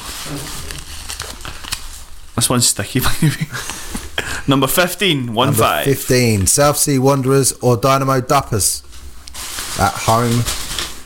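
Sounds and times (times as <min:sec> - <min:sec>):
flattened paper ball being unfolded: 0:00.0 - 0:02.2, 0:08.8 - 0:11.0
speech: 0:00.3 - 0:00.8, 0:02.4 - 0:08.9, 0:09.8 - 0:10.6.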